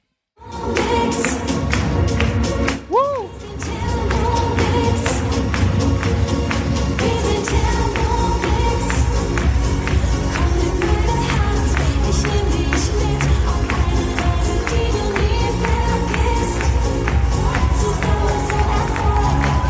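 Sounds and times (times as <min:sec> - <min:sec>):
crowd clapping on one and three: 0:00.6 - 0:19.6
crowd cheering: 0:15.7 - 0:19.6.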